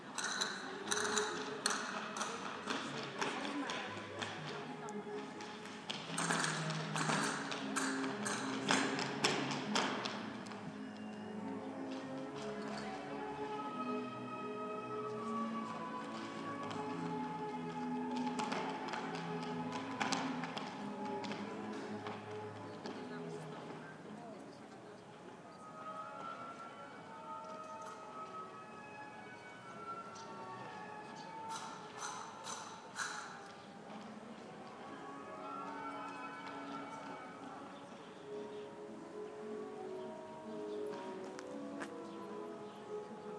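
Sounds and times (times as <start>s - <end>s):
flamenco music: 0.1s - 23.8s, 25.7s - 43.3s.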